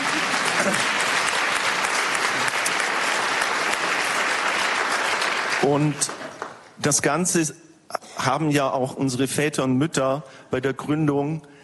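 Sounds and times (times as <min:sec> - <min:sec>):
audience applause: 0:00.0 - 0:06.7
speech: 0:05.6 - 0:06.2, 0:06.8 - 0:11.5.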